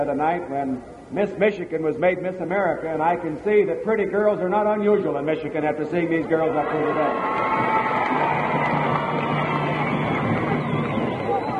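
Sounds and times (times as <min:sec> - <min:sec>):
speech: 0:00.0 - 0:07.8
boys cheering in a crowd: 0:06.2 - 0:11.5.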